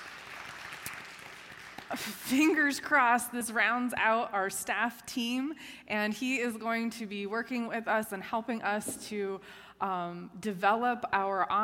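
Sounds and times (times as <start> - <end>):
crowd clapping: 0.0 - 2.1
speech: 1.9 - 11.6.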